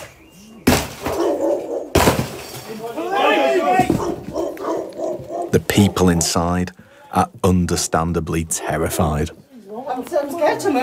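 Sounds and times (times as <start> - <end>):
plastic front door being smashed open: 0.6 - 1.2, 1.9 - 2.7
raised agitated voices: 3.3 - 9.4
speech: 5.5 - 9.4, 10.0 - 10.8.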